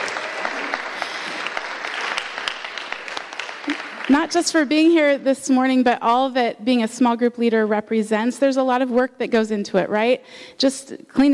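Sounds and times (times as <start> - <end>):
audience applause: 0.0 - 4.7
speech: 4.1 - 11.3.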